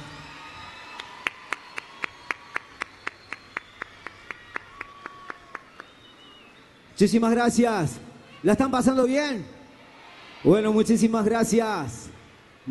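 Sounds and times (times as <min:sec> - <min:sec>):
audience applause: 0:00.0 - 0:06.6
speech: 0:07.0 - 0:09.6, 0:10.4 - 0:12.1.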